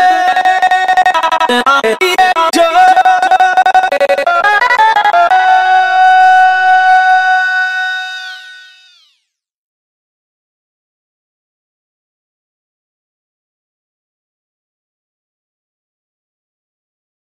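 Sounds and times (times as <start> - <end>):
vocals: 0.0 - 7.9.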